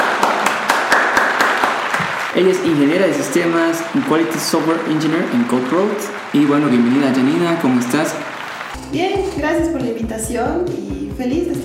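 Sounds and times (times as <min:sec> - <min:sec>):
applause: 0:00.0 - 0:08.8
speech: 0:02.4 - 0:11.6.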